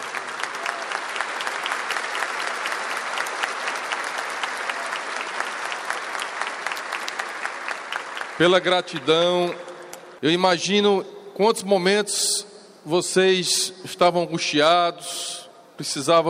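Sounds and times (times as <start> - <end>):
audience applause: 0.0 - 9.6
speech: 8.4 - 9.6, 10.2 - 16.2.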